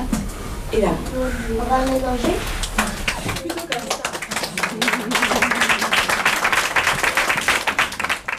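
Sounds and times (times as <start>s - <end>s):
speech: 0.7s - 2.6s
audience applauding at the end of a show: 2.6s - 8.3s.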